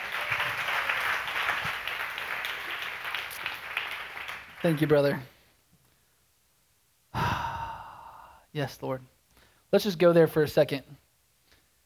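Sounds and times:
church congregation clapping to welcome a speaker on Orphan Sunday: 0.0 - 5.2
speech: 4.6 - 5.4, 8.6 - 9.1, 9.7 - 11.0.

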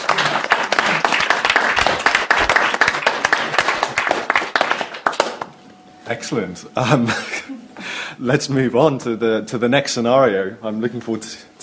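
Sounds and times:
group applauding: 0.0 - 5.6
speech: 6.1 - 7.6, 8.2 - 11.6.

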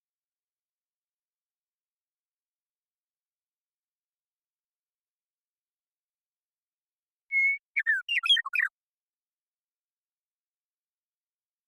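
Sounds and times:
western meadowlark singing: 7.3 - 8.7.

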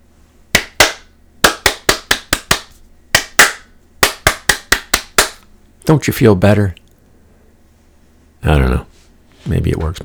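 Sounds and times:
hand clapping: 0.5 - 5.5
speech: 5.9 - 6.8, 8.4 - 8.9, 9.5 - 10.0.

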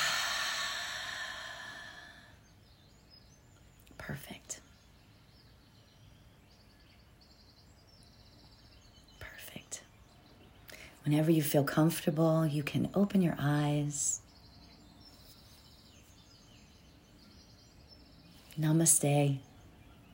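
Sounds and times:
breathing in a guided meditation exercise: 0.0 - 2.4
speech: 4.1 - 4.6, 11.1 - 14.3, 18.6 - 19.5.

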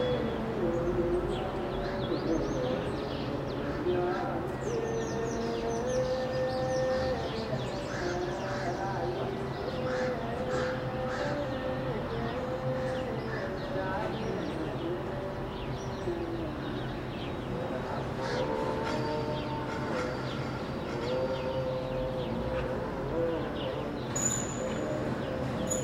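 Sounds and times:
birds chirping: 0.0 - 25.8
chanting voices from an Orthodox church daily mass in Addis Ababa: 0.0 - 25.8.

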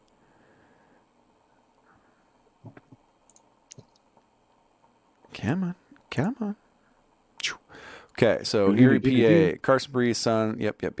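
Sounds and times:
computer mouse clicking to open a news story: 2.7 - 4.2
speech: 5.4 - 6.6, 8.2 - 10.9.

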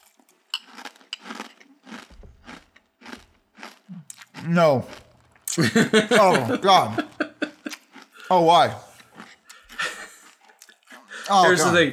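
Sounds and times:
crunching Grape Nuts cereal close to mic: 0.0 - 5.8, 6.6 - 11.1
speech: 4.4 - 5.0, 5.6 - 7.0, 8.3 - 8.8, 11.3 - 11.9
laughter: 5.5 - 8.4, 9.6 - 11.9
heavy breathing: 9.4 - 11.4.

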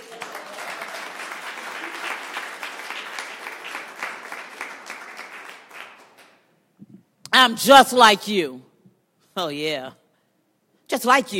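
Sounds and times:
crowd applause: 0.0 - 6.4
speech: 7.4 - 8.7, 9.4 - 10.0, 10.9 - 11.3.

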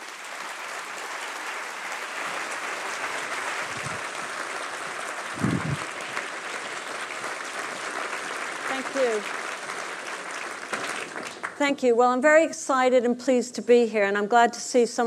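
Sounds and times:
lecture audience applause welcoming a professor: 0.0 - 11.6
speech: 9.0 - 9.4, 11.6 - 15.0.

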